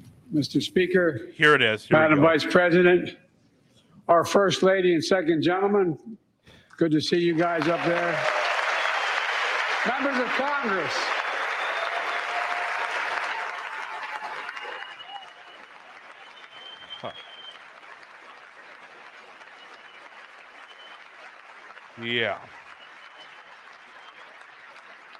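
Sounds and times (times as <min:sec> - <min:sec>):
speech: 0:00.3 - 0:03.2, 0:04.1 - 0:06.2, 0:06.8 - 0:08.4, 0:09.8 - 0:11.2, 0:22.0 - 0:22.6
applause in congressional chamber: 0:07.1 - 0:25.1.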